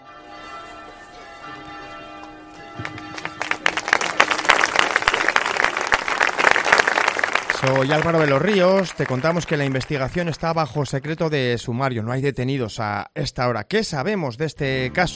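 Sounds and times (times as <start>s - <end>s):
crowd applause after a minute's silence: 2.8s - 10.7s
speech: 7.6s - 15.1s.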